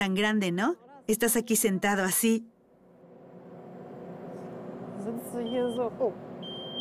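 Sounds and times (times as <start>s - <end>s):
speech: 0.0s - 2.5s, 5.1s - 6.3s
car seat sensor warning beep: 5.4s - 6.8s.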